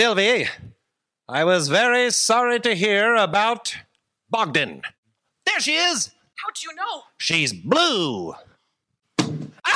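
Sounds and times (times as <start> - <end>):
speech: 0.0 - 0.7, 1.3 - 8.5
very large thrown book hitting someone's leg: 9.2 - 9.6.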